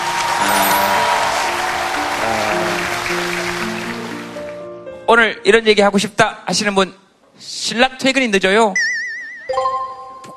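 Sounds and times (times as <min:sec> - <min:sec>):
audience applause: 0:00.0 - 0:04.6
speech: 0:05.2 - 0:08.9.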